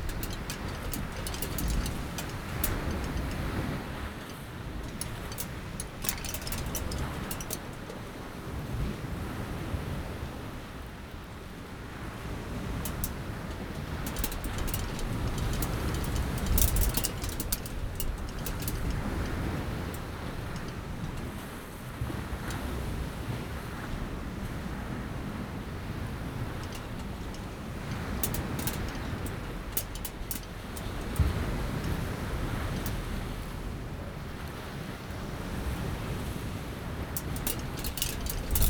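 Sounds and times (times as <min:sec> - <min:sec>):
wind on aluminium in Curacao: 0:00.0 - 0:38.6.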